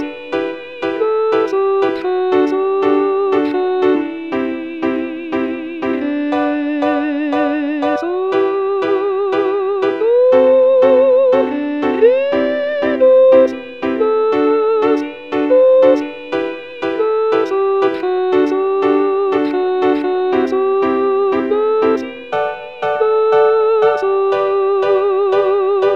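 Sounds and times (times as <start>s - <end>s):
musical accompaniment for intonation: 0.0s - 25.9s.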